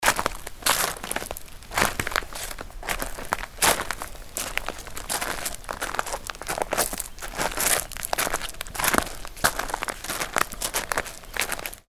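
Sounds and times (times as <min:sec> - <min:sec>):
footsteps on gravel: 0:00.0 - 0:11.8.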